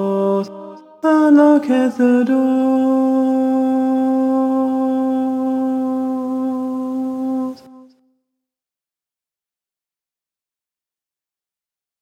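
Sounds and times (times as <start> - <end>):
tenor singing: 0.0 - 7.9
choral music: 0.0 - 8.0.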